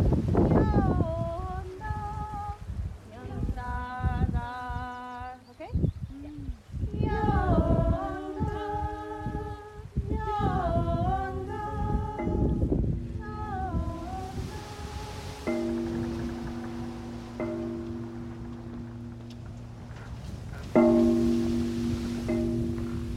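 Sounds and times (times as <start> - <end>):
soft hiss: 0.1 - 23.1
low rumble: 6.8 - 23.1
two steady low droning tones: 6.8 - 23.1.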